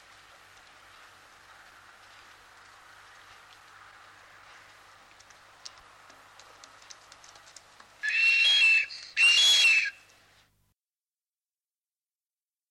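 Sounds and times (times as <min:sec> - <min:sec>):
blue duck giving breathy high whistled calls: 0:08.0 - 0:10.1.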